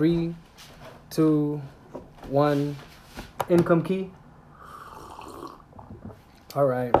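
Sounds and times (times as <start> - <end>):
speech: 0.0 - 4.2, 6.6 - 6.9
person sipping tea: 4.5 - 5.7.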